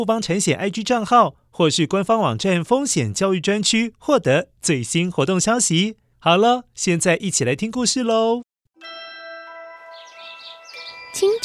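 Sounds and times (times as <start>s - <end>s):
speech: 0.0s - 9.0s, 11.1s - 11.4s
sparrows chirping outside the window: 9.8s - 11.4s.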